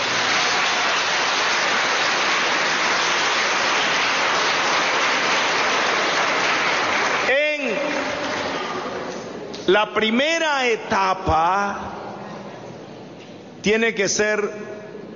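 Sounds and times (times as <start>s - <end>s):
audience applause: 0.0s - 9.3s
speech: 9.7s - 12.0s, 13.6s - 14.8s.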